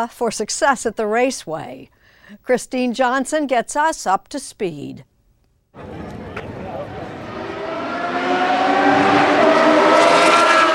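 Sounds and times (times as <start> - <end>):
speech: 0.0 - 5.1, 5.8 - 6.0
Formula One race cars roaring in Austin Texas: 5.8 - 10.7.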